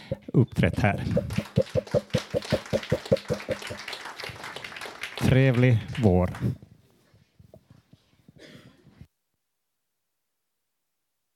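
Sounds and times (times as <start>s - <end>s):
speech: 0.1s - 2.2s, 5.3s - 6.6s
audience applause: 1.1s - 6.4s.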